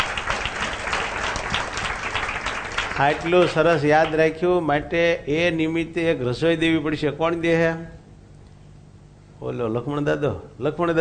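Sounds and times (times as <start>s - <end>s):
audience of devotees clapping at a religious gathering: 0.0s - 4.4s
speech: 3.0s - 8.0s, 9.4s - 10.9s.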